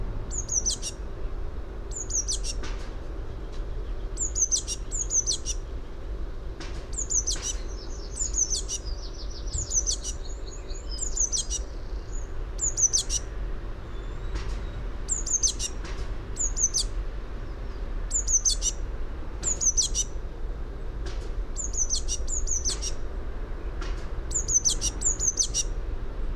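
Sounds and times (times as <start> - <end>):
low background hum: 0.0 - 26.3
Eurasian blue tit calling: 0.3 - 1.0, 1.9 - 2.6, 3.9 - 5.6, 6.9 - 14.4, 15.1 - 15.8, 16.4 - 16.9, 18.1 - 18.8, 19.4 - 20.2, 21.6 - 23.0, 24.3 - 25.8.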